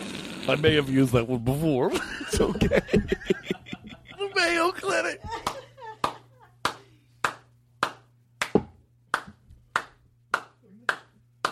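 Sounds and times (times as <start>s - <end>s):
speech: 0.5s - 3.4s
laughter: 1.9s - 7.0s
lone person clapping for a joke at a comedy show: 5.4s - 11.4s.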